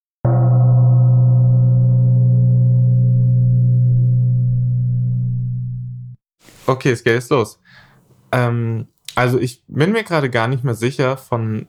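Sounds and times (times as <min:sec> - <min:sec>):
gong strike ringing: 0:00.3 - 0:05.4
speech: 0:06.7 - 0:11.6.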